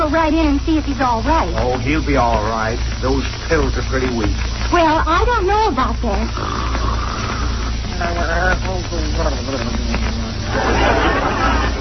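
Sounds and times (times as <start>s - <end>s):
speech: 0.1s - 6.9s, 8.0s - 11.7s
loud snoring: 6.2s - 8.6s
laughter: 10.4s - 11.7s.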